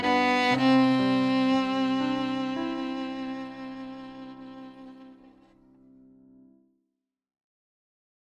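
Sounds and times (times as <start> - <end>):
violin: 0.0 - 6.4
piano: 0.0 - 6.7.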